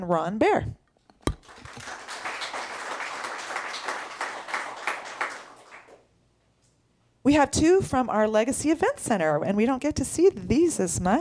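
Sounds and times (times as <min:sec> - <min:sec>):
speech: 0:00.0 - 0:00.8, 0:07.2 - 0:11.2
applause: 0:01.4 - 0:06.0.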